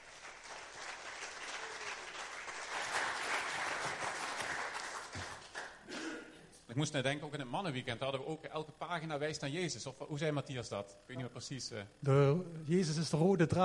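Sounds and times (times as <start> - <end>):
applause: 0.0 - 5.8
speech: 6.8 - 13.6.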